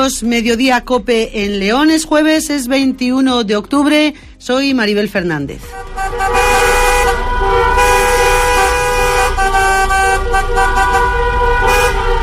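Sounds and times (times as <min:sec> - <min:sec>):
speech: 0:00.0 - 0:06.4
car horns honking during vehicle protest march: 0:05.7 - 0:12.2.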